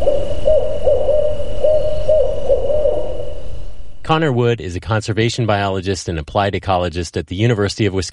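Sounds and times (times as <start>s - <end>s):
barred owl call: 0.0s - 4.0s
speech: 4.1s - 8.1s.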